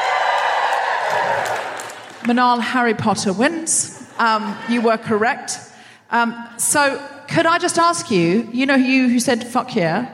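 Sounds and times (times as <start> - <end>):
audience cheering: 0.0 - 2.3
speech: 2.2 - 10.1.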